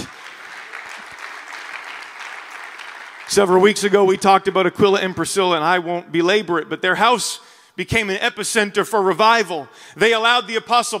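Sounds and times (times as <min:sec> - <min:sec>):
audience clapping hands: 0:00.0 - 0:04.6
speech: 0:03.3 - 0:10.9.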